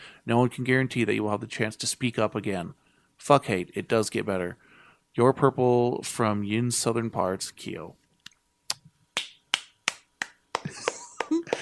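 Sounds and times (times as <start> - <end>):
speech: 0.2 - 8.0
audience finger snapping in place of applause: 9.2 - 11.6.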